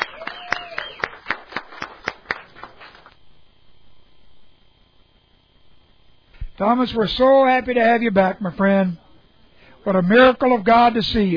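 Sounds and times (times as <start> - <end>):
audience applauding: 0.0 - 3.2
speech: 6.6 - 9.0, 9.8 - 11.3.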